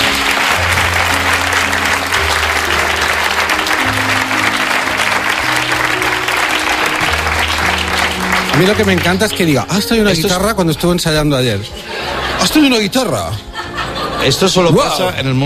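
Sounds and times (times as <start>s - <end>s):
audience applause: 0.0s - 10.2s
low stepping musical notes: 0.0s - 11.8s
speech: 8.6s - 13.5s, 14.2s - 15.4s
laughter: 11.7s - 15.2s.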